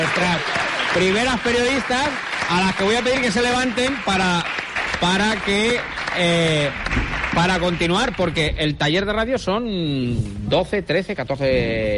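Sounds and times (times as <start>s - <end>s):
audience clapping for young girls from a radio workshop: 0.0s - 8.7s
speech: 0.0s - 11.9s.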